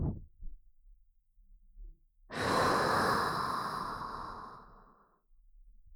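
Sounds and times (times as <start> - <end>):
blowing into the right ear: 2.3 - 4.7.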